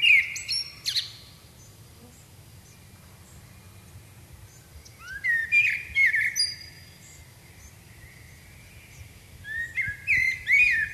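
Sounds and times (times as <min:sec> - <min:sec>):
common blackbird Turdus merula singing: 0:00.0 - 0:01.7, 0:04.5 - 0:10.9.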